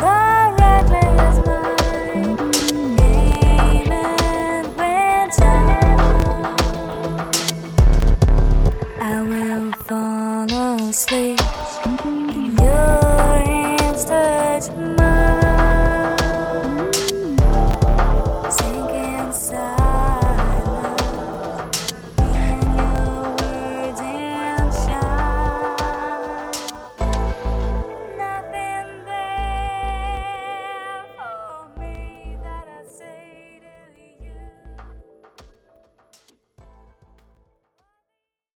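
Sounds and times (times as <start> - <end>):
slow groove music: 0.0 - 29.6.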